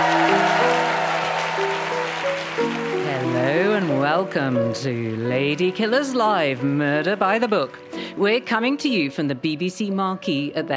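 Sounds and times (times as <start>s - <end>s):
tumultuous audience applause: 0.0s - 8.2s
speech: 4.2s - 10.7s.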